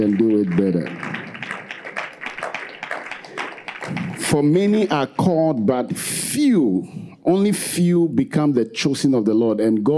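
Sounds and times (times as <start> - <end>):
speech: 0.0 - 1.2, 4.3 - 9.9
audience clapping hands: 0.0 - 5.1.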